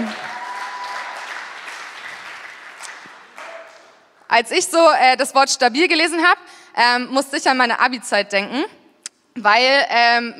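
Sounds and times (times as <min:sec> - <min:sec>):
audience applause: 0:00.0 - 0:04.0
speech: 0:04.4 - 0:08.8, 0:09.4 - 0:10.3.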